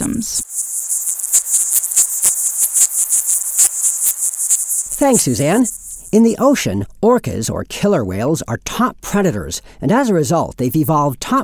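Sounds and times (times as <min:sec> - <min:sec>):
speech: 0:00.0 - 0:00.5, 0:05.0 - 0:11.4
insects chirping: 0:00.0 - 0:06.2
sharp clicks and ticks: 0:00.0 - 0:06.2.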